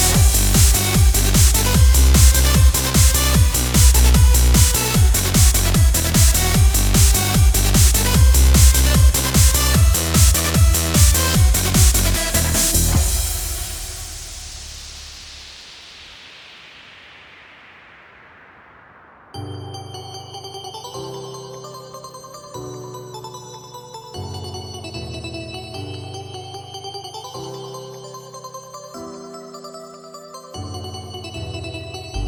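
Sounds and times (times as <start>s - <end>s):
hardstyle music: 0.0s - 15.5s.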